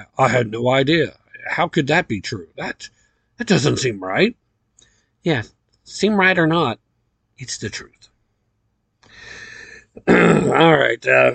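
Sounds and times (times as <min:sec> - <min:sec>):
speech: 0:00.1 - 0:04.4, 0:05.2 - 0:06.8, 0:07.4 - 0:08.0, 0:10.0 - 0:11.3
throat clearing: 0:10.0 - 0:10.9.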